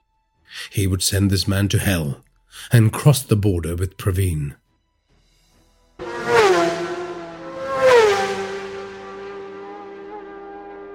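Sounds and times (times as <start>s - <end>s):
speech: 0.7s - 4.6s
car engines keening: 6.0s - 10.9s.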